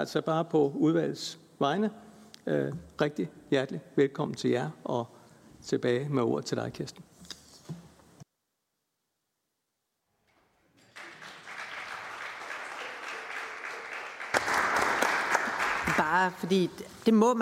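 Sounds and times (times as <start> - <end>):
speech: 0.0 - 7.1, 16.4 - 17.4
audience applause: 10.8 - 16.4.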